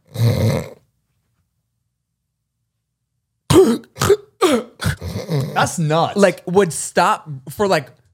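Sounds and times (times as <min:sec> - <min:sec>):
person vocally imitating sleep apnea snoring and gasping: 0:00.0 - 0:00.8, 0:03.5 - 0:05.8
speech: 0:05.6 - 0:08.0.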